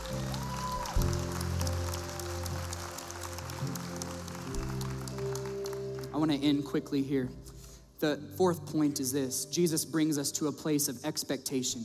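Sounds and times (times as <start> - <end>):
audience applause: 0.0 - 6.2
speech: 6.2 - 11.8.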